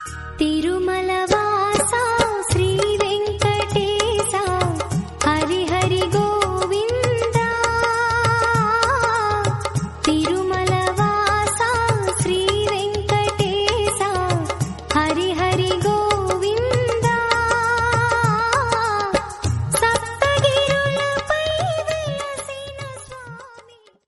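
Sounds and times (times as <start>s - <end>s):
Telugu devotional song: 0.0s - 23.5s.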